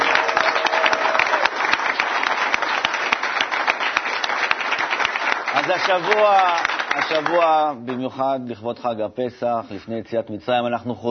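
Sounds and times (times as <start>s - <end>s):
audience applause: 0.0s - 8.0s
speech: 5.7s - 11.0s.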